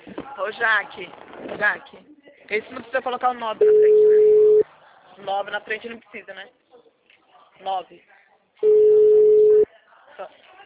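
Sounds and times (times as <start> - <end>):
speech: 0.4 - 4.1, 5.2 - 6.6, 7.6 - 8.8, 10.2 - 10.4
telephone ringing tone while a call is being placed: 8.6 - 9.6.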